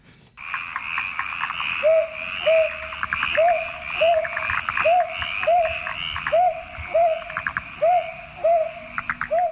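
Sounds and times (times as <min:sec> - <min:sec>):
brown hawk-owl giving soft low rising hoots: 0:00.4 - 0:09.5
chorus of croaking frogs: 0:00.4 - 0:09.5.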